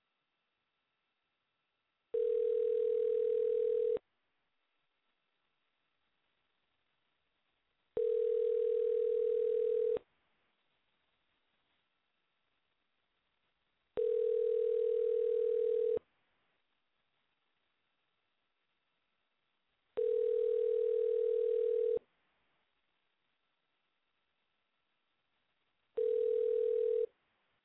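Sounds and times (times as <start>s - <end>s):
telephone dial tone: 2.2s - 4.0s, 8.0s - 10.0s, 14.0s - 16.0s, 20.0s - 22.0s, 26.0s - 27.1s.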